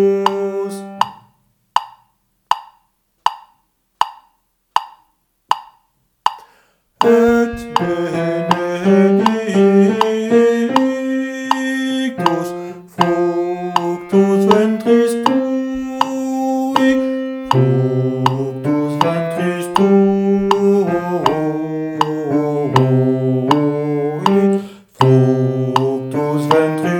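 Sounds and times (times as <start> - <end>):
bass voice singing a sacred song: 0.0 - 1.0, 7.0 - 26.9.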